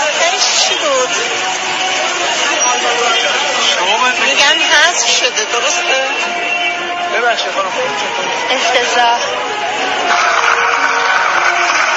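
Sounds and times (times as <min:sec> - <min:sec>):
cinema crowd noise: 0:00.0 - 0:11.9
speech: 0:04.5 - 0:06.3, 0:07.1 - 0:10.6
cinema audience applauding a film by Abbas Kiarostami: 0:10.0 - 0:11.9.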